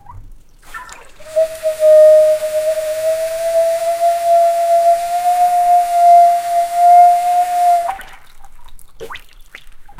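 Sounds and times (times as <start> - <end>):
hippo blowing water: 0.7 - 8.2.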